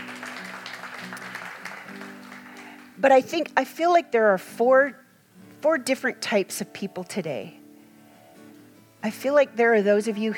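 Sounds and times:
audience applause: 0:00.0 - 0:03.0
speech: 0:03.0 - 0:05.0, 0:05.6 - 0:07.6, 0:09.0 - 0:10.3.

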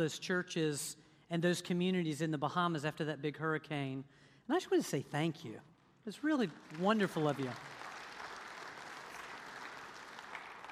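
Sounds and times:
speech: 0:00.0 - 0:07.8
audience applauding: 0:06.5 - 0:10.7.

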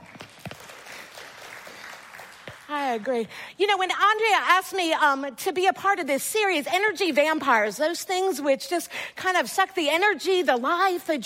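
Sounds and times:
audience clapping: 0:00.0 - 0:03.2
speech: 0:02.7 - 0:11.2.

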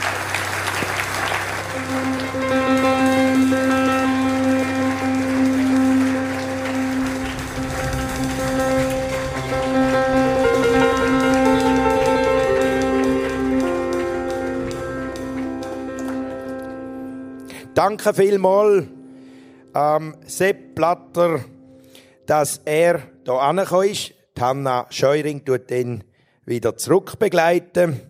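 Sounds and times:
audience applause: 0:00.0 - 0:17.0
music playing: 0:00.0 - 0:22.0
speech: 0:01.9 - 0:02.6, 0:17.8 - 0:19.0, 0:19.8 - 0:21.5, 0:22.3 - 0:28.0.

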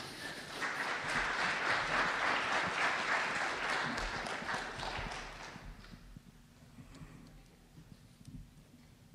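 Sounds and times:
audience applause welcoming a speaker to a religious talk: 0:00.0 - 0:05.9.

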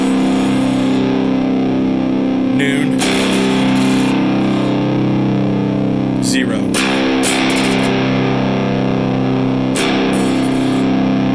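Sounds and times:
electric guitar played through fuzz pedal: 0:00.0 - 0:11.3.

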